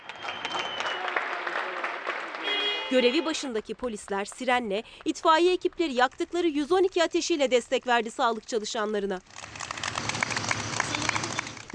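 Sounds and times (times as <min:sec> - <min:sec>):
crowd applauding from balconies and windows: 0:00.0 - 0:03.3, 0:09.3 - 0:11.7
speech: 0:02.9 - 0:09.4.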